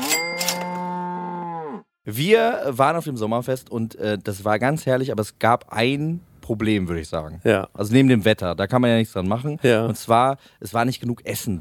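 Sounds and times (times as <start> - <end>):
show jingle: 0.0 - 0.9
cow mooing: 0.5 - 1.9
speech: 2.0 - 11.5.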